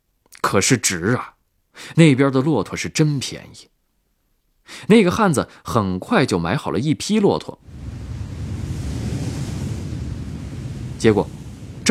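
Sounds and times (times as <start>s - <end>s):
speech: 0.5s - 3.8s, 4.7s - 7.9s, 11.0s - 11.8s
strong wind blowing sand and stones: 7.6s - 11.8s.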